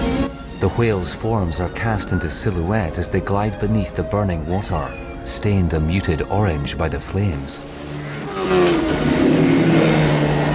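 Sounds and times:
speech: 0.6 - 7.7, 8.5 - 8.8
boat motor running: 7.2 - 10.5.

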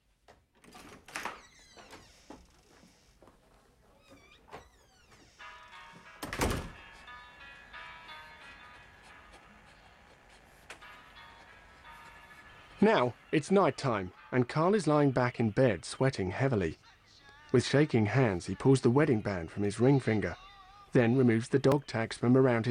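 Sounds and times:
door clicks and rattles as a woman leaves: 0.6 - 2.4, 6.2 - 6.8
speech: 12.8 - 16.8, 17.5 - 22.6.

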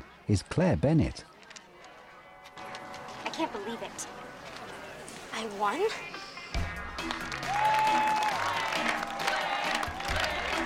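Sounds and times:
speech: 0.3 - 1.3, 3.4 - 4.2, 5.4 - 6.1
crowd of students applauding: 6.9 - 10.6
scattered cheers: 7.4 - 10.6.

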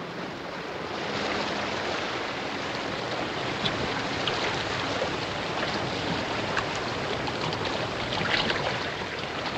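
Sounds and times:
ocean water rushing as a submarine slips below the waves: 0.0 - 9.5.

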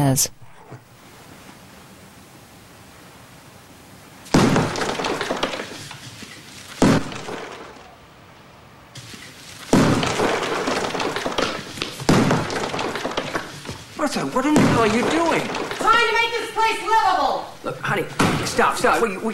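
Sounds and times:
speech: 0.1 - 0.8, 14.2 - 19.3
sledgehammer knocking down a wall: 4.3 - 5.9, 6.8 - 7.6, 9.7 - 16.3.

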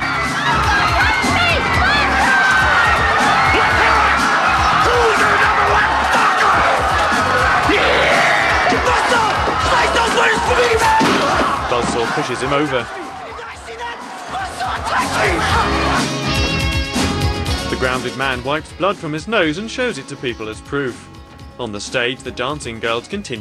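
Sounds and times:
crowd cheering, whooping and yelling for a wrestler: 0.0 - 18.4
speech: 12.0 - 13.0, 15.2 - 16.2, 17.8 - 23.4.

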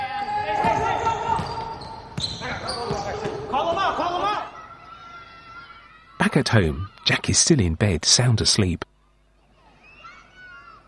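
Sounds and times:
sneakers squeaking: 0.2 - 3.9
basketball bouncing on a basketball court: 0.6 - 3.8
speech: 6.4 - 8.9.

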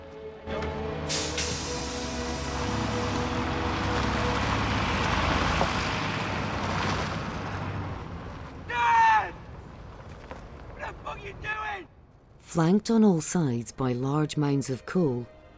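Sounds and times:
heavy diesel bus engine rumbling and revving: 0.4 - 11.4
bus air brakes hissing: 1.0 - 3.2
speech: 12.6 - 15.4.

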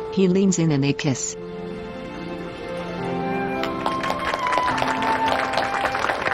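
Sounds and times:
speech: 0.2 - 1.4
dozens of onlookers applauding a couple kissing: 3.3 - 6.3.

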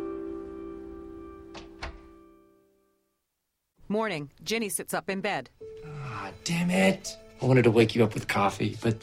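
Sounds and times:
door closing: 1.5 - 2.1
speech: 3.9 - 9.0.

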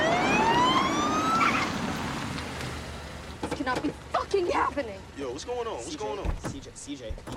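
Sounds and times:
police car siren wailing: 0.0 - 2.0
engine and road noise: 0.0 - 7.3
speech: 3.7 - 7.3.

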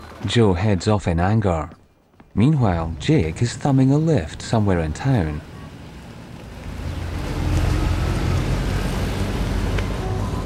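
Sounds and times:
speech: 0.2 - 1.8, 2.4 - 5.5
green car pulling up and stopping: 2.6 - 10.4.

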